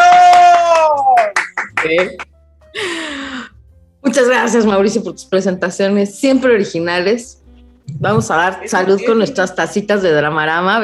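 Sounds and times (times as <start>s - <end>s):
audience applause: 0.0s - 2.2s
speech: 1.9s - 2.3s, 4.2s - 10.8s.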